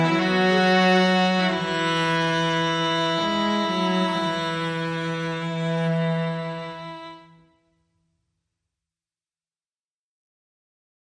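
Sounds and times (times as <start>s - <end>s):
strings: 0.0s - 7.7s.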